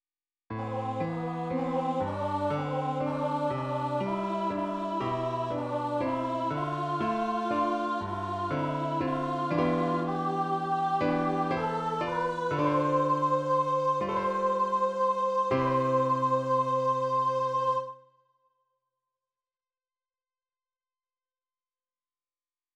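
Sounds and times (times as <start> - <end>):
piano playing a memorial acclamation: 0.5 - 17.9.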